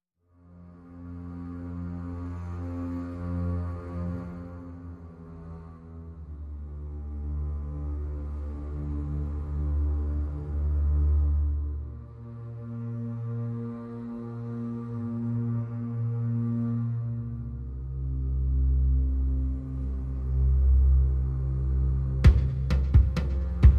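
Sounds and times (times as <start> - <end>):
bass: 0.2 - 23.7
drums: 22.2 - 23.7.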